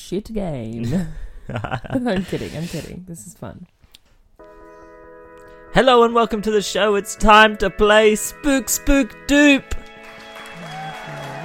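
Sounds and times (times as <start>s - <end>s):
speech: 0.1s - 3.8s, 5.7s - 9.9s
game show studio audience applause: 9.5s - 11.4s.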